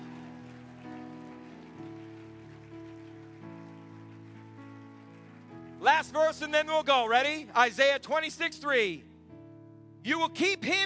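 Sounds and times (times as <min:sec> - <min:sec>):
hand clapping: 0:00.0 - 0:06.6
speech: 0:05.8 - 0:09.1, 0:10.0 - 0:10.8.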